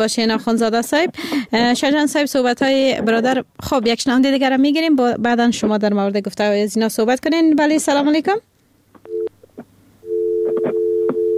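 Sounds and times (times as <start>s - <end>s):
speech: 0.0s - 8.5s
telephone busy tone after a disconnected call: 9.1s - 9.3s, 10.0s - 11.3s.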